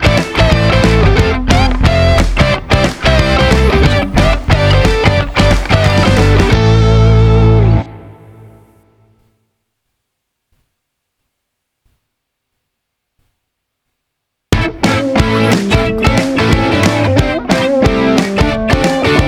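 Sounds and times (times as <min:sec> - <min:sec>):
cheerful rock music: 0:00.0 - 0:08.0, 0:14.6 - 0:19.2.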